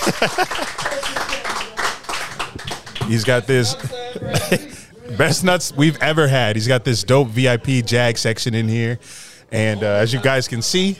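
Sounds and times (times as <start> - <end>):
laughter: 0.0 - 1.8, 3.1 - 6.3
round of applause: 0.0 - 4.1
speech: 0.1 - 1.4, 3.1 - 10.9.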